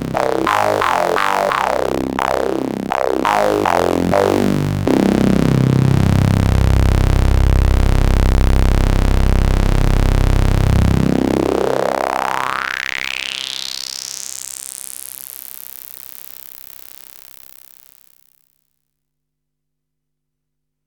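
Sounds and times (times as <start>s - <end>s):
analog synthesizer bass through high-pass filter: 0.0s - 13.5s.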